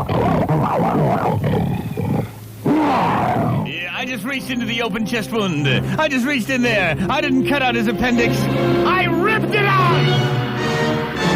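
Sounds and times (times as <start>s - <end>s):
deep growling roar: 0.0s - 3.7s
speech: 4.2s - 10.4s.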